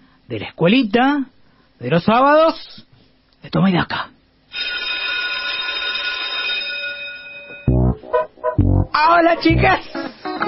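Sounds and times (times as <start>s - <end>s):
speech: 0.3s - 4.1s, 9.0s - 10.4s
school bell ringing: 4.6s - 7.8s.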